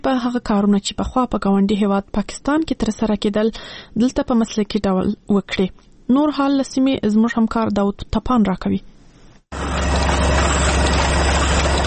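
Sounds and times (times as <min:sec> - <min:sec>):
speech: 0:00.0 - 0:08.9, 0:09.5 - 0:09.9
printing machine in a print shop in Afghanistan printing pages of a small book: 0:09.5 - 0:11.8.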